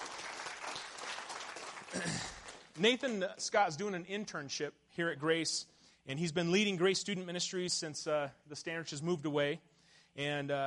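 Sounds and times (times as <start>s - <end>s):
round of applause: 0.0s - 3.2s
speech: 2.0s - 10.6s.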